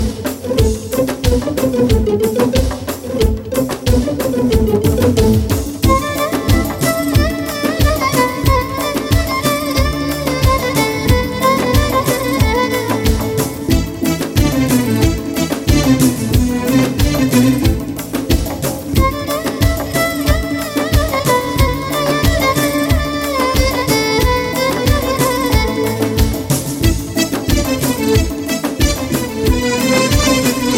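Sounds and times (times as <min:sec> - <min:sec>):
violin: 0:00.0 - 0:30.7.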